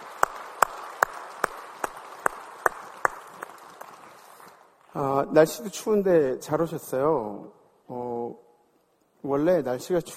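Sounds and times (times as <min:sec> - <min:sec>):
audience applause: 0:00.0 - 0:04.8
speech: 0:05.0 - 0:08.4, 0:09.2 - 0:10.1.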